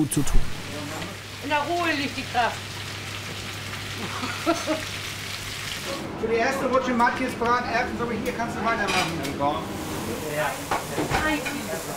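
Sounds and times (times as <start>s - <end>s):
speech: 0.0s - 0.6s, 1.4s - 2.7s, 4.0s - 5.0s, 5.8s - 11.9s
schnitzels frying in a pan for a catering order: 0.6s - 6.0s, 9.8s - 11.9s.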